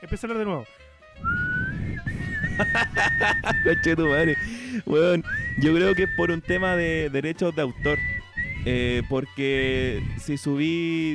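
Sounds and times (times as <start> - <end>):
speech: 0.0 - 1.5, 2.6 - 11.1
thin shrill flute tone in a video: 1.2 - 7.1, 7.7 - 9.1
rhythmic breathy bursts: 1.8 - 2.8, 4.4 - 5.6
laughter: 2.4 - 4.0.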